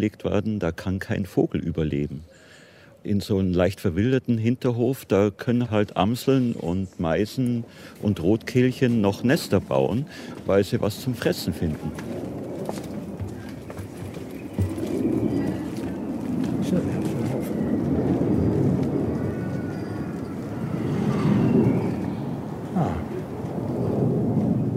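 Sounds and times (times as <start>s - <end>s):
speech: 0.0s - 12.3s
small airplane flying over: 11.7s - 24.7s.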